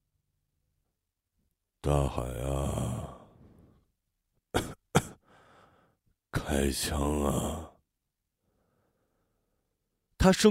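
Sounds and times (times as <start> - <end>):
speech: 1.8 - 3.0, 6.5 - 7.7, 10.2 - 10.5
man coughing violently: 4.5 - 5.2.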